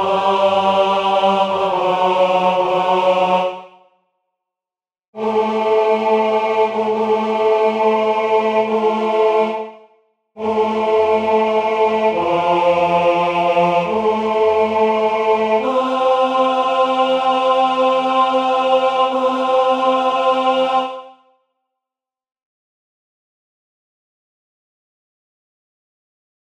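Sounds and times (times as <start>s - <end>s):
tenor singing: 0.0s - 3.6s, 5.2s - 9.8s, 10.4s - 21.1s.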